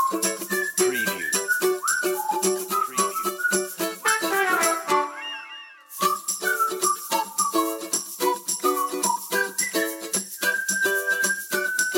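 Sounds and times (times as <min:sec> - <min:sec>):
percussion: 0:00.0 - 0:11.9
ukulele: 0:00.0 - 0:11.9
whistles: 0:00.0 - 0:11.9
trumpet: 0:04.0 - 0:06.2.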